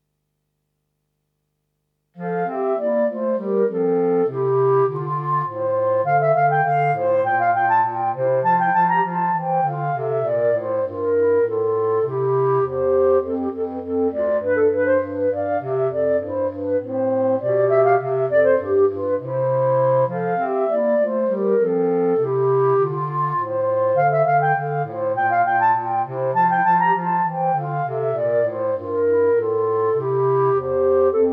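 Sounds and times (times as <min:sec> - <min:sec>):
horn: 0:02.2 - 0:31.3.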